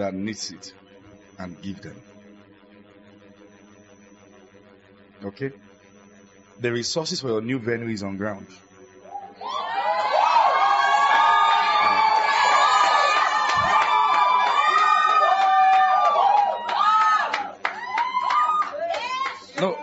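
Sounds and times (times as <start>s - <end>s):
speech: 0.0s - 0.8s, 1.4s - 2.2s, 5.2s - 5.7s, 6.6s - 8.6s
large crowd cheering and shouting: 9.0s - 19.8s
applause: 11.2s - 19.8s.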